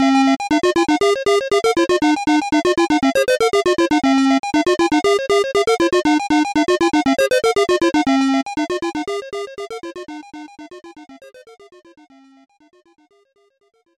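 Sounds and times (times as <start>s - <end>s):
fast level background music: 0.0s - 13.7s.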